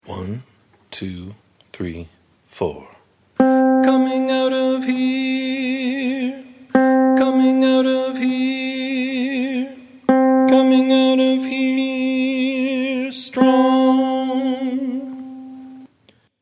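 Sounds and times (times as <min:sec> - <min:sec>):
chorus singing: 0:03.6 - 0:15.9.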